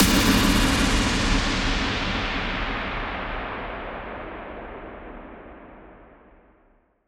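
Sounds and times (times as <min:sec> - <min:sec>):
impact: 0:00.0 - 0:05.2.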